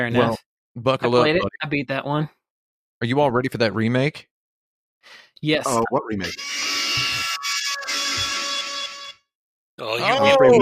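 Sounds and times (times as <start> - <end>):
speech: 0.0 - 2.4, 3.0 - 4.3, 5.0 - 7.1, 9.8 - 10.5
buzzer: 6.3 - 9.3.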